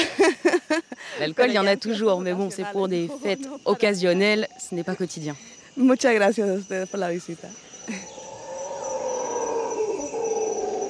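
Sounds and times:
speech: 0:01.2 - 0:08.1
howler monkeys of Costa Rica howling: 0:07.5 - 0:10.8.

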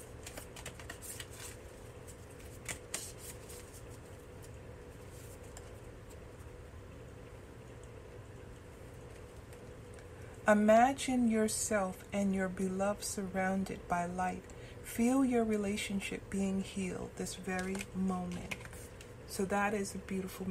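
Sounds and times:
oracle cards being shuffled and pulled: 0:00.0 - 0:06.2, 0:17.5 - 0:19.1
low hum: 0:00.0 - 0:20.4
speech: 0:10.5 - 0:18.6, 0:19.3 - 0:20.4.

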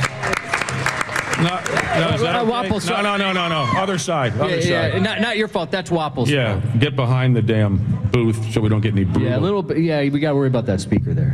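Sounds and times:
audience applause: 0:00.0 - 0:04.4
speech: 0:01.4 - 0:11.3.

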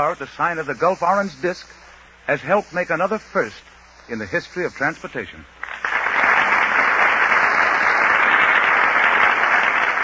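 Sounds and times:
speech: 0:00.0 - 0:05.6
large studio audience applauding: 0:05.6 - 0:10.0.

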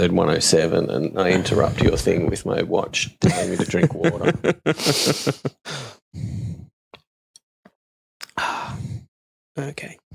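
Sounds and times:
speech: 0:00.0 - 0:06.4, 0:09.6 - 0:10.1
laughter: 0:03.2 - 0:05.7
breathing into a microphone: 0:04.7 - 0:06.7, 0:08.4 - 0:09.1.

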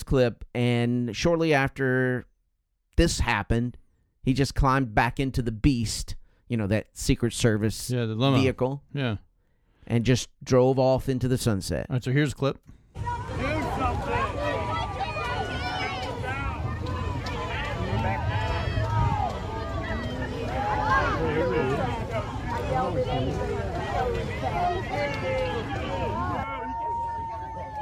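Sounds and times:
speech: 0:00.1 - 0:02.3, 0:03.0 - 0:09.2, 0:09.9 - 0:13.2
crowd booing: 0:13.0 - 0:27.8.

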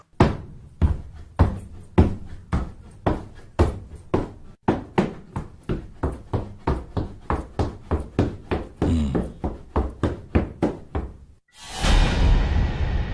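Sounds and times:
footsteps running up wooden stairs: 0:00.1 - 0:11.4
loud sustained rushing noise: 0:11.5 - 0:13.1.

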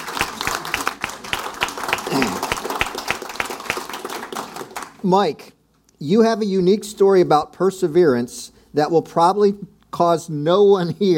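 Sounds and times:
audience clapping: 0:00.0 - 0:05.0
speech: 0:05.0 - 0:11.1.

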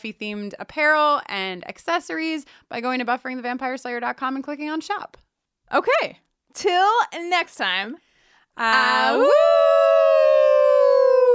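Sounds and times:
speech: 0:00.0 - 0:10.3
person howling awoo: 0:08.8 - 0:11.3.

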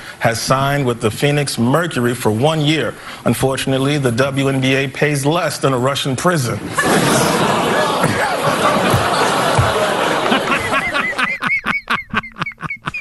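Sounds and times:
speech: 0:00.2 - 0:07.5
audience groaning: 0:06.7 - 0:11.2
laughter: 0:06.7 - 0:12.9.

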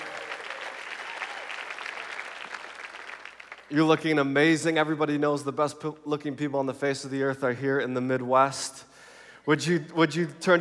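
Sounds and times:
audience applause: 0:00.0 - 0:03.7
speech: 0:03.7 - 0:08.9, 0:09.5 - 0:10.5.

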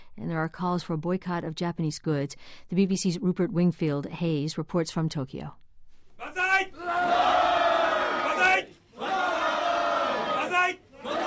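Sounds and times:
speech: 0:00.2 - 0:05.6
crowd shouting banzai cheer at Liberal Democratic Party offices: 0:06.2 - 0:11.2.

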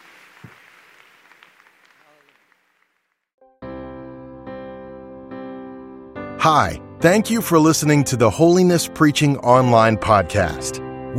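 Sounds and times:
audience hand clapping: 0:00.0 - 0:03.2
speech: 0:06.4 - 0:11.1.

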